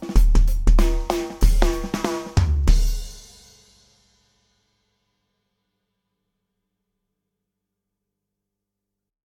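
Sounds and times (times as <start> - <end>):
demo drums: 0.0 - 4.4.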